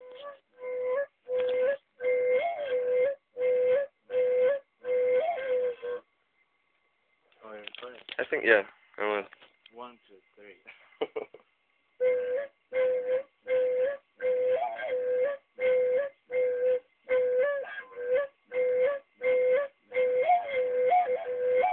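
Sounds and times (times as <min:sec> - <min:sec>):
Bali mushroom flute: 0:00.0 - 0:06.1, 0:12.0 - 0:21.7.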